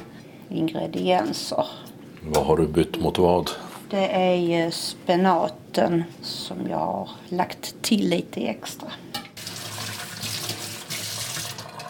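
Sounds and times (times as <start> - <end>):
speech: 0.5 - 9.1
knife rinsed under running tap: 9.4 - 11.8.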